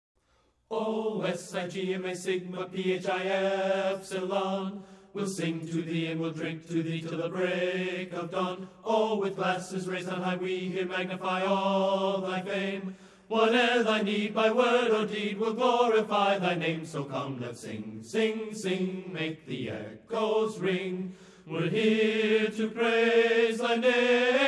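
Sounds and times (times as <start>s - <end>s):
marching song: 0.7s - 24.4s.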